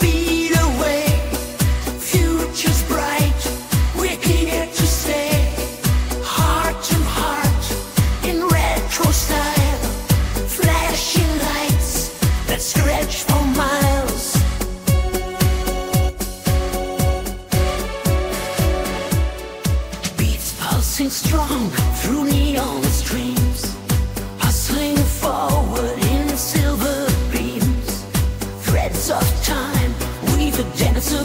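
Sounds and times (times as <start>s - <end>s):
1980s style music: 0.0s - 31.2s.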